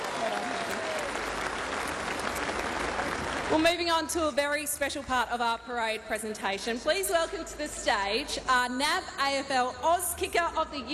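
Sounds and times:
crowd applause: 0.0 - 3.6
speech: 3.5 - 10.9.

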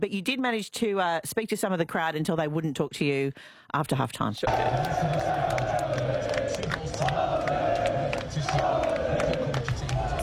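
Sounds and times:
speech: 0.0 - 7.3
football fan zone crowd cheering and chanting: 4.4 - 10.2
people shouting: 4.5 - 10.2
scattered claps: 4.5 - 10.2.

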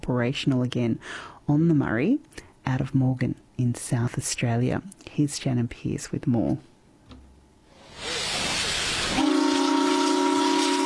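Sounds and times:
speech: 0.1 - 6.7
paddle steamer steam hissing: 7.7 - 10.8.

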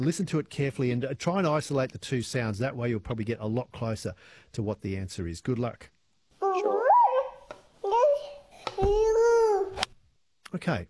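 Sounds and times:
speech: 0.0 - 5.9, 10.5 - 10.8
baby babbling: 6.4 - 9.8.

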